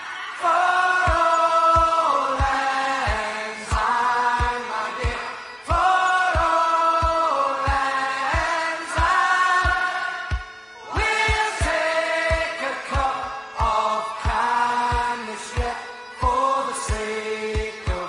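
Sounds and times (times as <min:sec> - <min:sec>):
folk tune ringtone: 0:00.6 - 0:18.0.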